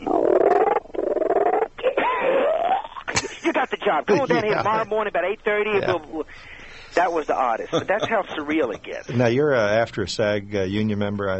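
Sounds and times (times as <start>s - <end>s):
man's vocal imitation of a frog throwing up a ring: 0.0s - 3.1s
laughter: 3.1s - 5.0s, 7.4s - 9.4s
speech: 3.9s - 11.3s.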